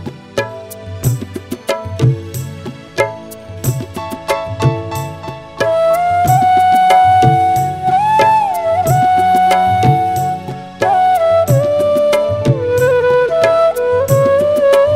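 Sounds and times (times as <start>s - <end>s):
karaoke music: 3.2s - 14.9s.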